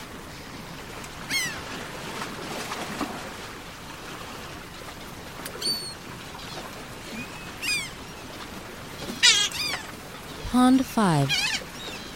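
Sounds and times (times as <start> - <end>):
gull crying: 7.2 - 8.0, 9.2 - 10.0, 11.2 - 11.7
speech: 10.6 - 11.5.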